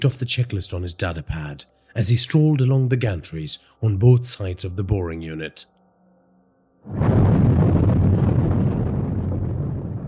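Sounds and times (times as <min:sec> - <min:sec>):
speech: 0:00.0 - 0:05.8, 0:06.8 - 0:07.3
small earthquake rumble: 0:06.8 - 0:10.0.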